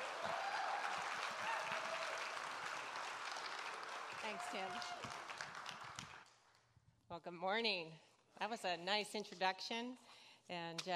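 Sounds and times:
church congregation applauding a guest speaker: 0.0 - 6.6
speech: 4.3 - 5.3, 7.1 - 10.9.

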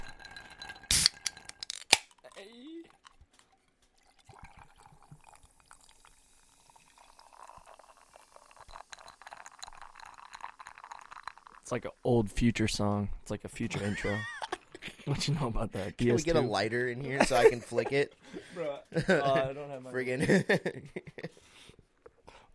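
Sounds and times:
coffee soda poured over ice: 0.0 - 12.0
can cracking open: 0.9 - 2.3
speech: 11.7 - 14.3, 15.1 - 21.1
laughter: 13.7 - 16.3, 17.0 - 21.4.

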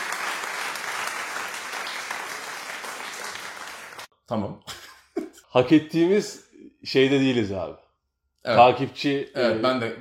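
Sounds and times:
applause sound effect: 0.0 - 4.1
speech: 4.3 - 4.8, 5.5 - 7.8, 8.4 - 9.9.

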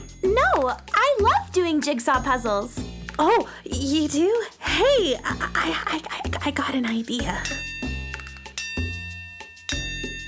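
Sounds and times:
speech: 0.6 - 7.7
school bell ringing: 7.4 - 10.2.

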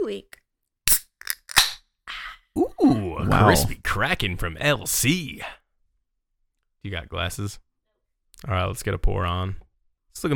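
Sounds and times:
speech: 0.1 - 0.4, 2.9 - 5.6, 6.8 - 7.6, 8.4 - 9.6, 10.2 - 10.3
beer cans being cracked open: 0.9 - 1.8.

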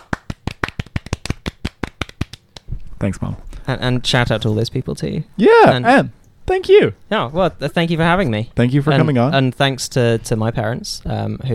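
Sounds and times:
small round of applause: 0.0 - 2.7
speech: 3.0 - 11.5.

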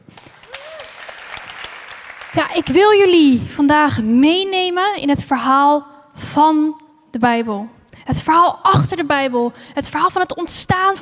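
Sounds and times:
audience applause: 0.0 - 2.8
speech: 2.4 - 10.9.

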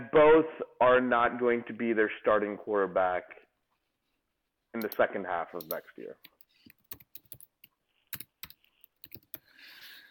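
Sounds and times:
speech: 0.1 - 3.4, 4.8 - 6.3
typing notes on a computer keyboard: 5.6 - 9.5.

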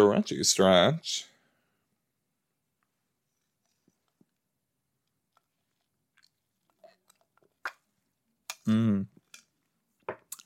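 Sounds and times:
speech: 0.0 - 1.3, 8.7 - 9.1
chewing a cranberry snack: 5.0 - 9.6.

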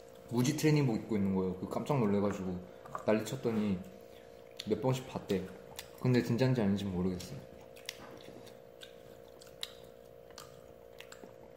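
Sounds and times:
speech: 0.3 - 4.0, 4.6 - 7.5
person chewing food that is not spicy: 2.7 - 6.3, 7.0 - 11.5.

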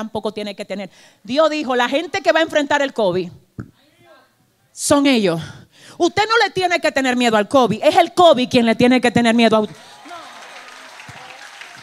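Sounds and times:
speech: 0.0 - 3.7, 4.8 - 9.9
audience applauding: 9.7 - 11.8.

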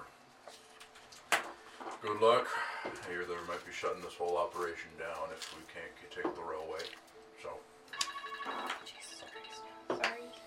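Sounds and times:
speech: 2.0 - 7.7, 8.4 - 9.0
alarm ringing: 7.9 - 8.8.

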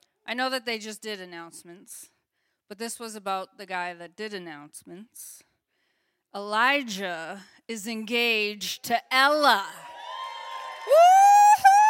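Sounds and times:
speech: 0.3 - 5.5, 6.3 - 9.9
person whooping in celebration: 10.0 - 11.8.

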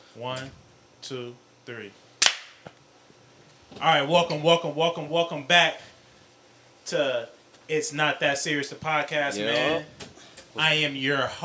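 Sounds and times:
speech: 0.2 - 2.8, 3.7 - 5.9, 6.9 - 10.0, 10.6 - 11.4
group hand clap: 2.2 - 2.6.

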